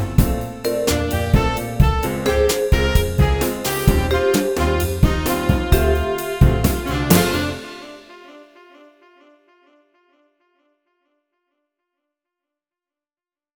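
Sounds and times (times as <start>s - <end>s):
saxophone: 0.0s - 10.2s.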